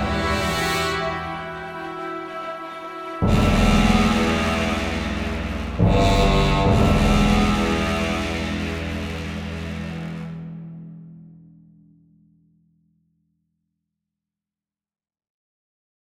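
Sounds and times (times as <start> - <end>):
high-intensity action music: 0.0 - 11.3.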